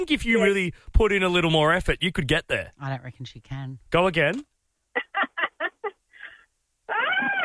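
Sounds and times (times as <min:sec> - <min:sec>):
speech: 0:00.0 - 0:04.5
woman screaming: 0:06.9 - 0:07.4.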